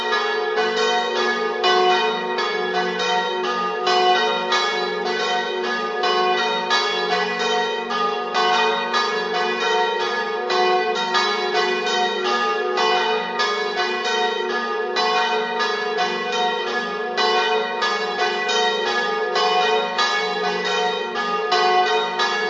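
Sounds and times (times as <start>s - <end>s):
bells ringing: 0.0s - 22.4s.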